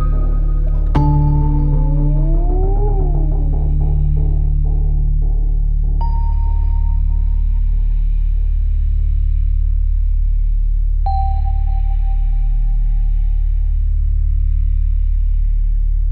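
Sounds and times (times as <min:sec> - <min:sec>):
atmospheric tension: 0:00.0 - 0:16.1.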